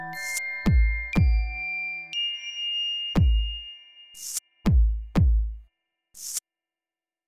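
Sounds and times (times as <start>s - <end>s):
temple prelude music: 0.0s - 5.6s.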